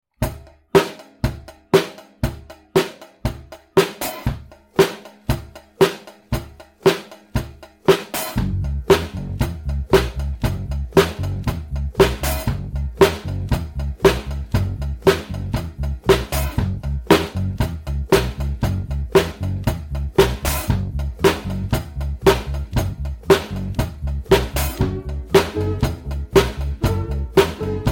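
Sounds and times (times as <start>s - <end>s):
bass intro: 0.0s - 27.9s
drums: 0.0s - 27.9s.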